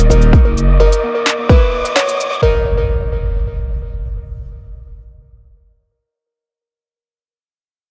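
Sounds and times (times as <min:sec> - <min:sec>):
gym phonk music: 0:00.0 - 0:03.4.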